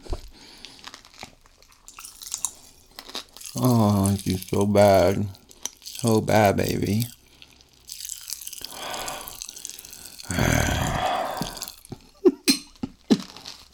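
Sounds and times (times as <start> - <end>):
Pop rocks candy crackling and fizzing: 0.1 - 13.7
speech: 3.6 - 5.4, 6.0 - 7.2.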